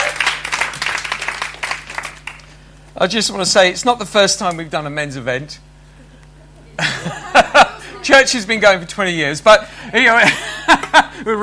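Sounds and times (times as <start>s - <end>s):
audience applause: 0.0s - 2.5s
speech: 3.0s - 5.7s, 8.0s - 11.4s
laughter: 6.0s - 8.5s, 10.1s - 11.4s.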